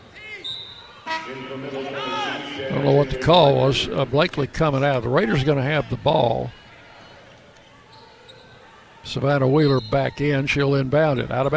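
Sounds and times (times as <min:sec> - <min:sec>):
referee's whistle at basketball game: 0:00.1 - 0:02.6, 0:07.9 - 0:08.7, 0:09.4 - 0:10.4
speech: 0:01.2 - 0:06.6, 0:09.1 - 0:11.5.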